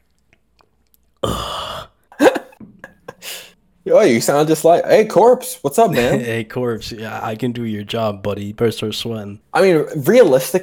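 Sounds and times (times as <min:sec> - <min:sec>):
voice imitating drinking water: 0:00.9 - 0:02.7
speech: 0:03.9 - 0:10.6.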